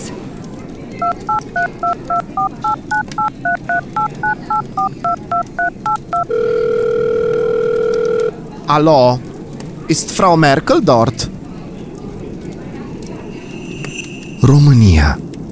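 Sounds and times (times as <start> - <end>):
speech: 1.0 - 7.0, 8.7 - 9.3, 9.9 - 11.4, 14.4 - 15.2
telephone number punched in on a touch-tone keypad: 1.0 - 8.3
continuous flat telephone line tone: 12.9 - 14.8.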